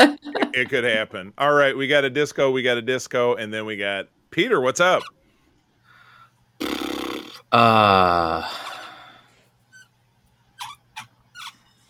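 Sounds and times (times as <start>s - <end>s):
speech: 0.0s - 5.2s, 6.6s - 6.9s, 7.5s - 8.7s
squeaky mouse: 4.9s - 5.2s, 9.7s - 11.8s.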